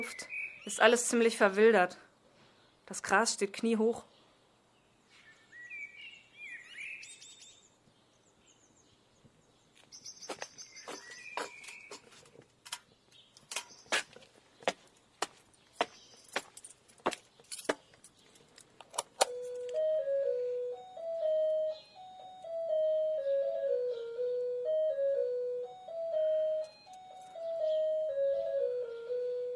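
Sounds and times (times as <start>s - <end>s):
speech: 0.0s - 2.0s, 2.9s - 4.1s
sharp jangling clicking hits: 16.2s - 19.7s
doorbell playing a catchy melody: 19.2s - 29.5s.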